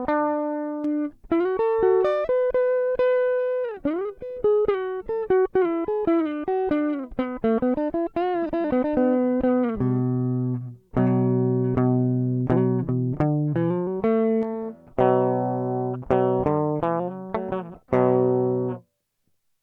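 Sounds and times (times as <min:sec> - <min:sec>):
fuzz guitar tone through Vox fuzz simulation: 0:00.0 - 0:18.8.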